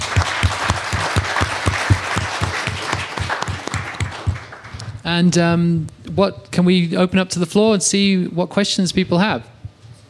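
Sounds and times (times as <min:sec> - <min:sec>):
audience applause: 0:00.0 - 0:05.0
speech: 0:05.1 - 0:09.5.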